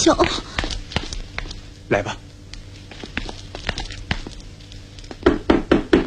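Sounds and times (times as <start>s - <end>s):
speech: 0.1s - 0.5s, 1.9s - 2.2s
knocking on a door: 5.2s - 6.0s.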